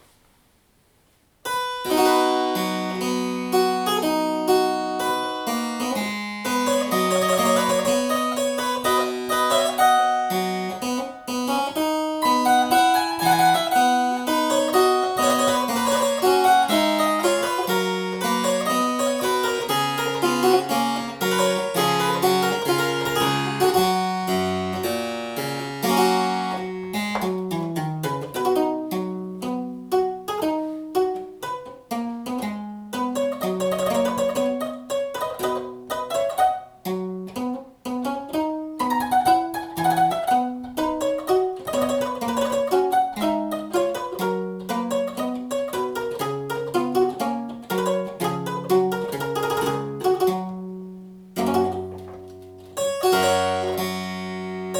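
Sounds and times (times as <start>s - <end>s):
spinet: 1.5s - 54.7s.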